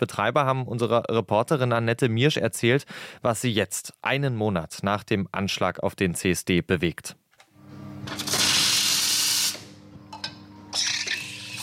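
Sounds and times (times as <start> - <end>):
speech: 0.0 - 7.2
coffee machine being cleaned: 8.2 - 9.5, 10.8 - 11.6.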